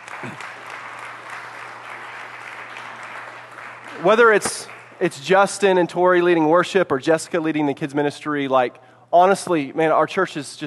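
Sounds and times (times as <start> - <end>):
church audience applause: 0.0 - 5.0
speech: 0.2 - 0.5, 4.0 - 10.6.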